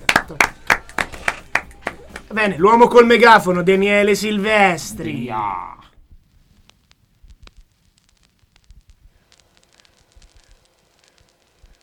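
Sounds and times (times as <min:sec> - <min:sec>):
applause, hands clapping: 0:00.0 - 0:02.3
speech: 0:02.3 - 0:05.8.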